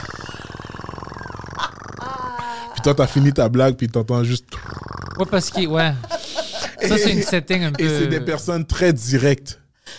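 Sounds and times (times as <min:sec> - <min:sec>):
voice imitating hookah water bubbling: 0:00.0 - 0:03.4, 0:04.4 - 0:05.7
speech: 0:02.8 - 0:04.6, 0:05.2 - 0:06.1, 0:06.8 - 0:09.6
laughter: 0:05.2 - 0:08.6.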